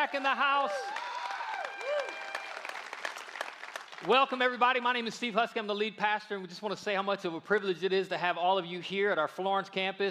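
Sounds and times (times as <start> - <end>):
speech: 0.0 - 1.0, 4.0 - 10.0
church congregation clapping at a Sunday morning service: 0.0 - 4.9.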